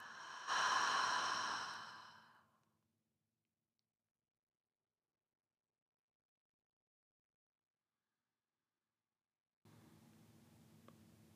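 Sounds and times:
deep breath in through the nose and sigh out the mouth during yoga nidra: 0.0s - 2.4s.

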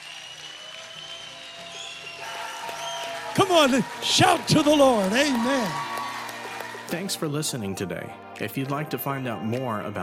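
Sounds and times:
audience clapping: 0.0s - 7.6s
speech: 3.4s - 5.9s, 6.9s - 10.0s.

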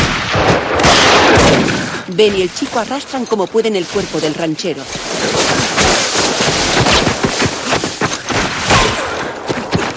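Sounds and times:
gunshots from a mountain: 0.0s - 2.8s, 5.0s - 9.9s
speech: 2.2s - 5.6s.

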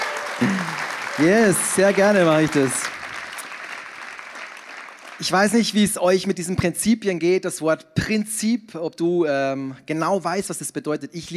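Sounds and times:
audience applause: 0.0s - 5.7s
speech: 0.4s - 2.8s, 5.2s - 11.3s.

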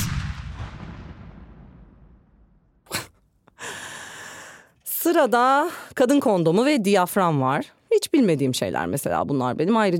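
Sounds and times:
booming gunshot sound effect: 0.0s - 2.8s
sharp crack: 0.0s - 2.8s
speech: 5.0s - 9.9s.

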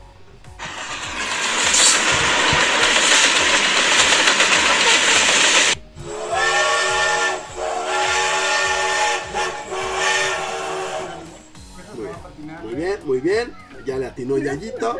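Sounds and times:
steam train steam hissing: 0.6s - 11.7s
speech: 14.3s - 14.9s.

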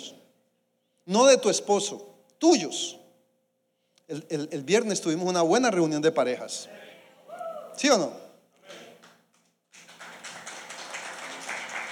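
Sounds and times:
speech: 1.1s - 3.0s, 4.1s - 6.9s, 7.8s - 8.8s
audience applauding: 9.0s - 11.8s.

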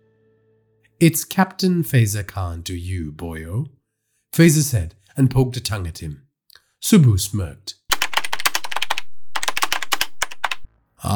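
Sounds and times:
speech: 1.0s - 7.8s
typing on a computer keyboard: 7.9s - 10.7s.

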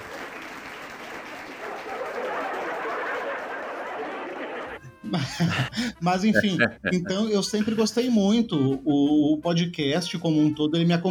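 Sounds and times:
applause: 0.0s - 4.8s
faint laughter: 1.8s - 7.9s
speech: 5.1s - 11.0s.

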